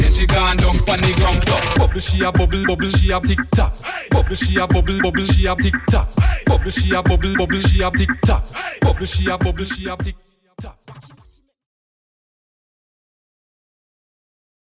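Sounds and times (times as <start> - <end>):
moombahton dance track: 0.0 - 11.4.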